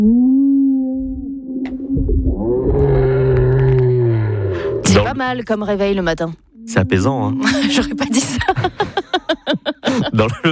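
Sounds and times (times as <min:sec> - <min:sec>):
speech: 0:00.0 - 0:00.2, 0:05.2 - 0:09.2, 0:09.9 - 0:10.5
whale song: 0:00.0 - 0:04.8
laughter: 0:07.4 - 0:10.5.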